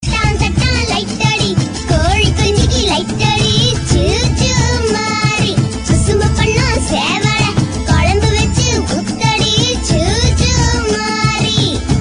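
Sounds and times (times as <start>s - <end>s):
children's song: 0.0s - 11.9s.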